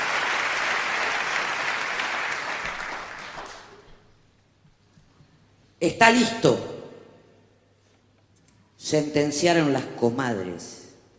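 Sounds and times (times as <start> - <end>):
audience applauding the poets: 0.0 - 4.0
speech: 5.8 - 6.7, 8.9 - 10.8.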